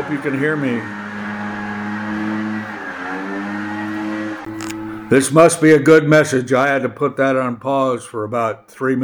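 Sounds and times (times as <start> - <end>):
blower engine droning: 0.0 - 5.5
speech: 0.1 - 1.0, 5.1 - 9.0.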